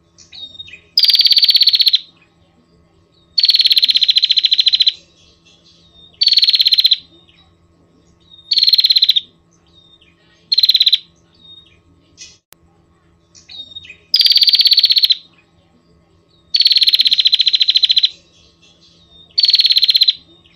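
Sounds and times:
Prinia rattling trills: 0:00.1 - 0:12.4, 0:13.2 - 0:20.5.

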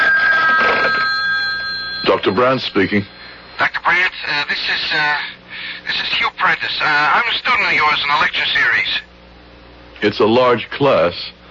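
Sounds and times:
telephone ringing tone on a call from a public phone: 0:00.0 - 0:03.6
speech: 0:02.2 - 0:09.1, 0:10.0 - 0:11.4.

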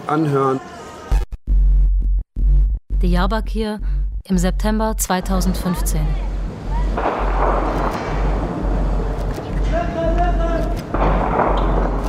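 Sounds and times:
speech: 0:00.1 - 0:00.8, 0:03.0 - 0:06.2
constant low rumble: 0:01.1 - 0:12.0
gunshots echoing over a city wall: 0:06.9 - 0:09.6, 0:10.6 - 0:12.0.

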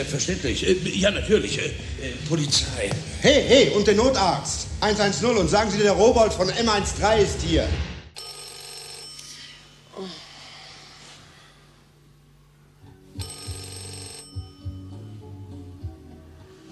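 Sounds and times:
speech: 0:00.0 - 0:07.9
low steady hum: 0:00.0 - 0:16.7
telephone bell ringing: 0:08.2 - 0:09.5, 0:13.2 - 0:15.2.

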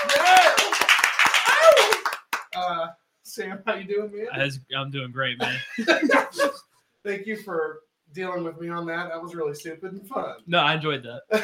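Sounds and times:
applause: 0:00.0 - 0:02.6
speech: 0:03.4 - 0:11.4
laughter: 0:05.4 - 0:06.6.

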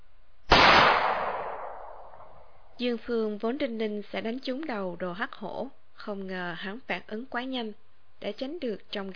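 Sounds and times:
gunshot with a long hissing tail: 0:00.5 - 0:02.4
speech: 0:02.8 - 0:09.1.

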